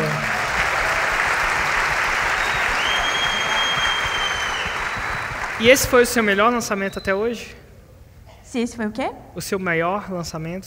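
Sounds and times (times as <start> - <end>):
audience applause: 0.0 - 6.9
speech: 5.6 - 7.6, 8.5 - 10.6.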